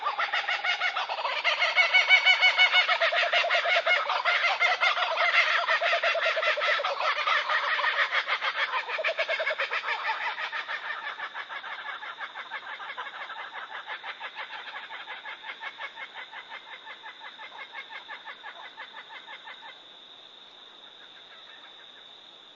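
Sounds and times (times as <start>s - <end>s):
Laughing kookaburra laughing call: 0.0s - 15.5s.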